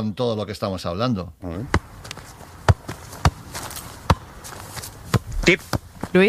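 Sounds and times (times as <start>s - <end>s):
speech: 0.0s - 2.2s, 5.5s - 6.2s
football juggled keepy-uppy: 1.6s - 6.2s.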